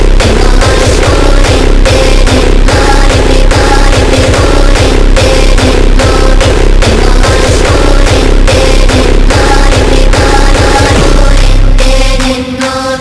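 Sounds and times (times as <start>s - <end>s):
phonk music: 0.0s - 12.9s.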